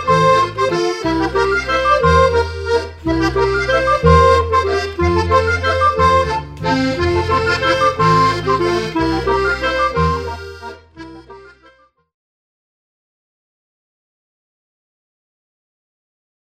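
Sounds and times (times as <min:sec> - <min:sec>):
Volksmusik folk music: 0:00.0 - 0:11.8.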